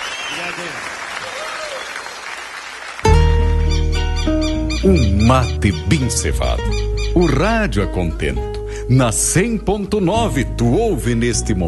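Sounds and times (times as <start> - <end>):
crowd clapping: 0.0 - 3.5
speech: 0.3 - 2.0, 4.8 - 11.6.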